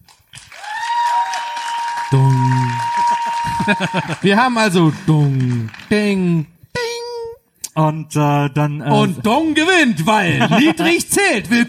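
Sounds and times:
audience applause: 0.0 - 6.2
speech: 2.1 - 2.9, 3.6 - 6.5, 7.8 - 11.6
laughter: 2.1 - 5.6, 10.2 - 11.6.

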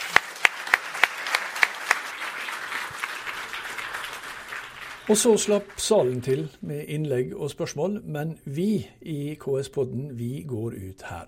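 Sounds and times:
audience applause: 0.0 - 6.6
speech: 5.1 - 11.2.

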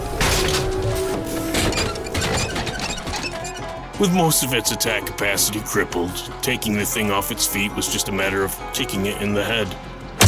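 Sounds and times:
machine creature's metal arm breaking: 0.0 - 3.8
grating cogs: 0.0 - 4.2
speech: 4.0 - 9.9.

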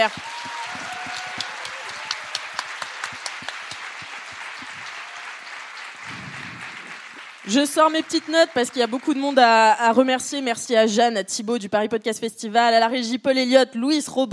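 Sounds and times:
speech: 0.0 - 0.6, 7.5 - 14.3
crowd applause: 0.0 - 9.8.

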